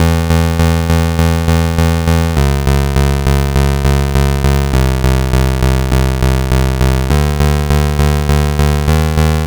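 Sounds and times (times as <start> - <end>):
Game Boy bass: 0.0 - 9.4.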